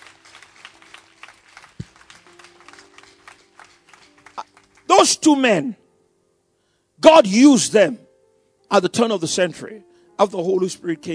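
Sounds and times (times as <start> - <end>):
audience clapping: 0.0 - 5.2
speech: 5.0 - 5.8, 7.1 - 8.0, 8.7 - 11.1.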